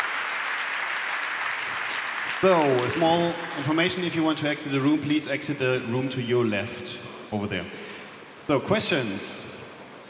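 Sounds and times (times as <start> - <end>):
audience applause: 0.0 - 4.3
speech: 2.4 - 7.8, 8.5 - 9.4.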